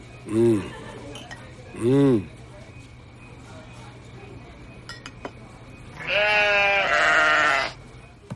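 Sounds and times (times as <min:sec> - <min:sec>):
speech: 0:00.2 - 0:00.8, 0:01.8 - 0:02.4
young goat bleating while grazing in front of a mutton stall: 0:06.0 - 0:07.8.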